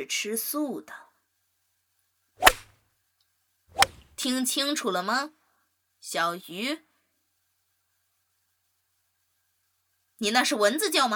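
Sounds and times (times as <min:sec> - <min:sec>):
speech: 0:00.0 - 0:01.0, 0:04.2 - 0:05.4, 0:06.0 - 0:06.9, 0:10.2 - 0:11.1
teacher's pointer swishing through the air: 0:02.4 - 0:02.7, 0:03.7 - 0:04.2.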